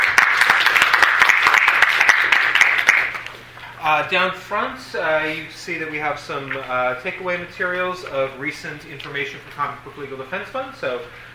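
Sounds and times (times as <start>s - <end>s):
audience round of applause: 0.0s - 3.3s
speech: 3.8s - 11.3s.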